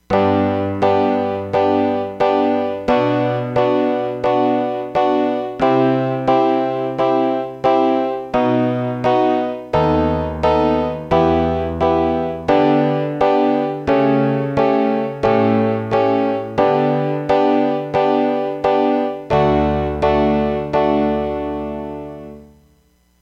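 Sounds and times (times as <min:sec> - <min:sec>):
piano: 0:00.0 - 0:22.8.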